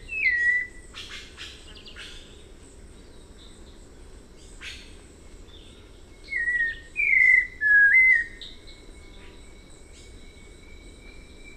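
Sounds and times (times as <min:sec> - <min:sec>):
White-necked Thrush song: 0:00.0 - 0:01.2, 0:06.2 - 0:08.5.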